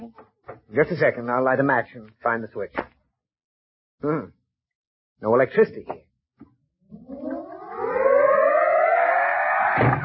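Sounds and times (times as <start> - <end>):
speech: 0.1 - 2.9, 4.0 - 4.4, 5.2 - 6.1
wind howling: 7.0 - 10.0.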